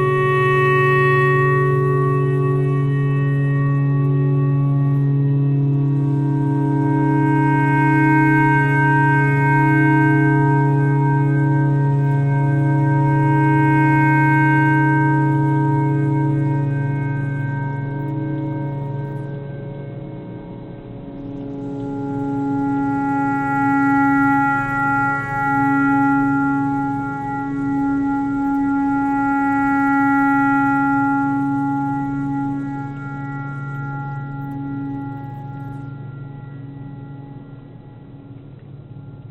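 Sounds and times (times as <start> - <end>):
clarinet playing pentatonic: 0.0 - 19.8, 21.3 - 38.2
tornado siren: 0.0 - 39.2.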